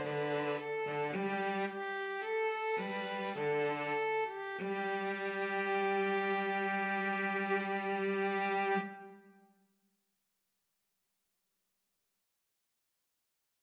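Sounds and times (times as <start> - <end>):
string trio playing: 0.0 - 9.2.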